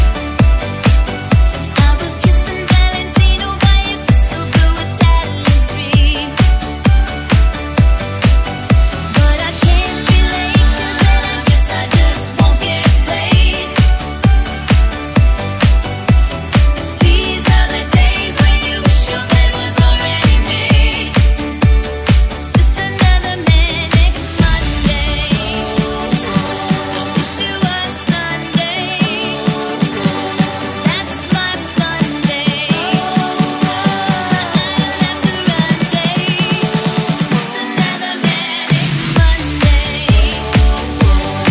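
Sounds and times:
party hype music: 0.0 - 41.4.

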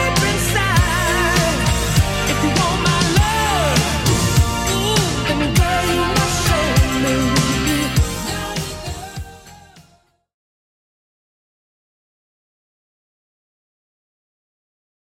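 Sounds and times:
80s drum beat: 0.2 - 9.4.

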